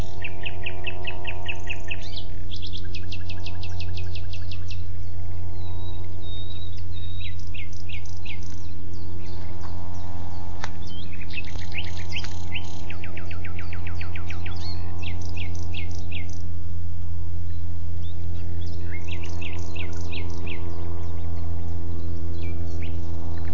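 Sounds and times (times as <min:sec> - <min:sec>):
common nightingale singing: 0:00.0 - 0:16.7, 0:17.3 - 0:23.5
steady low mechanical hum: 0:00.0 - 0:23.5.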